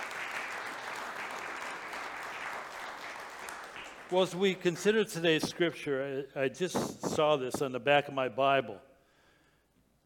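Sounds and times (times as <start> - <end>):
audience applause: 0.0 - 5.1
speech: 4.1 - 8.9.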